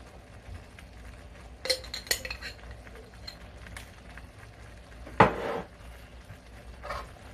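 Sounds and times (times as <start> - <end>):
utensil clinking and scraping in a pan stirring jerk seasoning into shrimp pasta: 1.6 - 3.9, 5.0 - 5.8, 6.7 - 7.3.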